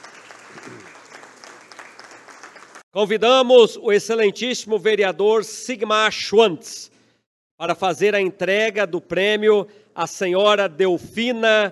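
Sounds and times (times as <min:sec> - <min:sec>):
audience applause at a municipal award ceremony: 0:00.0 - 0:02.8
speech: 0:02.9 - 0:07.0, 0:07.6 - 0:11.7.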